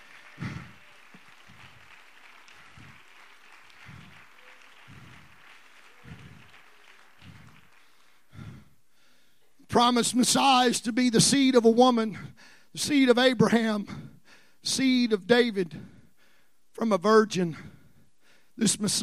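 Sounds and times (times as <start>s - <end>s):
audience clapping hands: 0.0s - 8.6s
speech: 9.8s - 14.0s, 14.6s - 15.9s, 16.8s - 17.7s, 18.6s - 19.0s.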